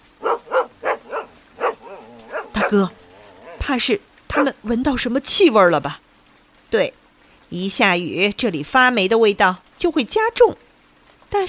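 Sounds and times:
village dogs barking: 0.0 - 4.6
speech: 2.6 - 3.0, 3.6 - 6.0, 6.7 - 10.6.

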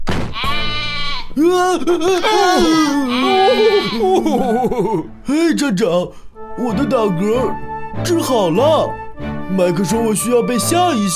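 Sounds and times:
sheep bleating: 0.4 - 1.4, 2.0 - 4.3
speech: 1.4 - 11.1
laughter: 1.6 - 5.1.

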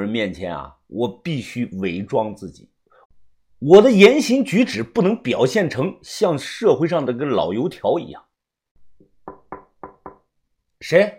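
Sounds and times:
speech: 0.0 - 2.7, 3.6 - 8.3, 10.8 - 11.1
soft knocking on a door: 9.0 - 10.3.

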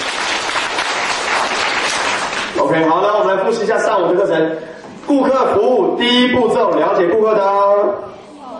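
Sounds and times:
audience applause: 0.0 - 2.6
speech: 2.6 - 8.2.

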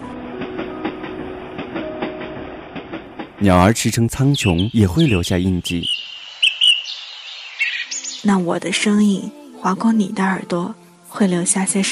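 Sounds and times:
train running over railway tracks: 0.1 - 5.8
speech: 3.4 - 6.0, 8.2 - 11.9.

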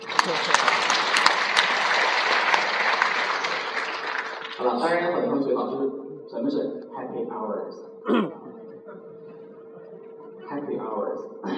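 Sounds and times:
conference audience applause: 0.0 - 4.9
speech: 4.6 - 8.3.

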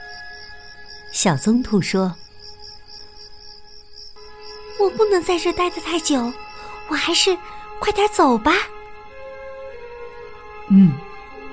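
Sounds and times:
crickets chirping: 0.0 - 8.5
speech: 1.2 - 2.2, 5.0 - 8.8, 10.7 - 11.0.

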